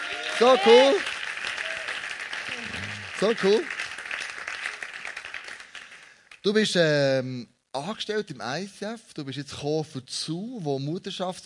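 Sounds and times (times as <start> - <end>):
audience applause: 0.0 - 6.2
speech: 0.4 - 1.1, 3.2 - 3.7, 6.4 - 11.4.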